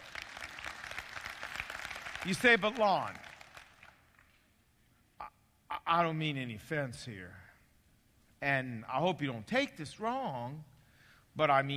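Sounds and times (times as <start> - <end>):
audience clapping: 0.0 - 4.5
speech: 2.2 - 3.3, 5.9 - 7.4, 8.4 - 10.7, 11.4 - 11.7.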